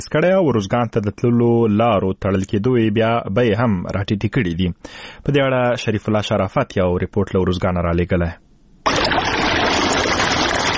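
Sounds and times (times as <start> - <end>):
speech: 0.1 - 9.2
water rushing through a pomegranate orchard being irrigated in Safid Khar near Tarinkot: 8.9 - 10.7.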